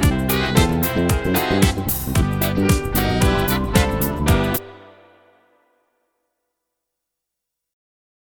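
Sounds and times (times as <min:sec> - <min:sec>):
funky soul music: 0:00.0 - 0:05.2.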